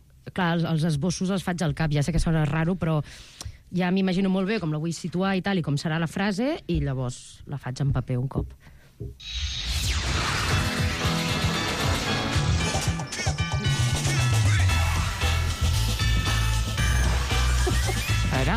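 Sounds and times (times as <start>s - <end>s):
speech: 0.4s - 10.6s
animated TV series opening theme music: 9.2s - 18.5s.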